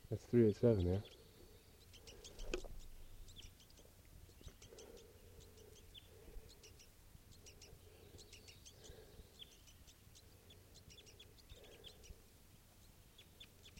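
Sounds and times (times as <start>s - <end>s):
juvenile birds giving high thin begging calls: 0.0s - 13.7s
speech: 0.1s - 1.2s.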